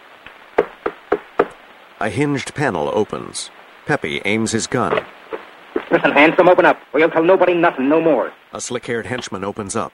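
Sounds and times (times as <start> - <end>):
knocking on a shop door: 0.6 - 1.6
speech: 2.0 - 5.2, 5.9 - 9.9.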